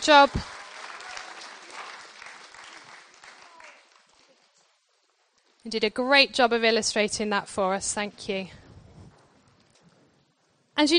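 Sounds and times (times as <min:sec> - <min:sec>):
speech: 0:00.0 - 0:00.6, 0:05.6 - 0:08.6, 0:10.8 - 0:10.9
crowd clapping for kids: 0:00.0 - 0:05.4.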